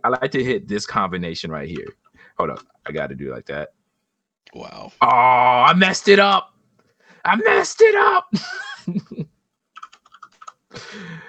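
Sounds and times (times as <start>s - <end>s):
speech: 0.0s - 3.8s, 4.4s - 6.5s, 7.2s - 9.3s, 10.7s - 11.2s
typing on a computer keyboard: 9.8s - 10.6s.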